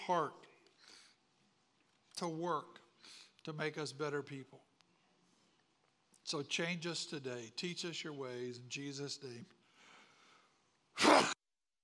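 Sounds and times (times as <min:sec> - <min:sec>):
speech: 0:00.1 - 0:00.5, 0:02.2 - 0:04.7, 0:06.3 - 0:09.6, 0:11.0 - 0:11.3
person sneezing: 0:11.0 - 0:11.4.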